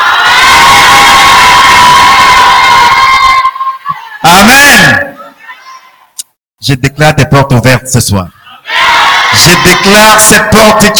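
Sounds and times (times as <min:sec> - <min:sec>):
audience shouting and cheering: 0:00.0 - 0:04.8, 0:08.6 - 0:10.9
speech: 0:06.7 - 0:08.4, 0:09.3 - 0:10.9.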